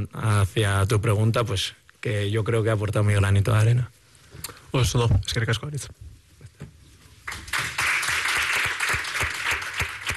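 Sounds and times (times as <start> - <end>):
speech: 0.0 - 6.1
applause at end of press conference: 7.2 - 10.1.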